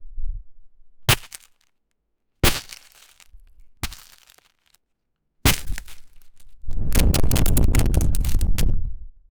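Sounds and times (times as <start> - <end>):
body damage sound: 1.1 - 1.5, 2.4 - 4.6, 5.5 - 6.4, 7.0 - 8.6.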